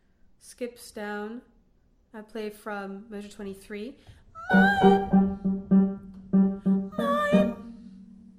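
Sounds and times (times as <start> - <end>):
tenor singing: 4.4 - 5.4, 6.6 - 7.8.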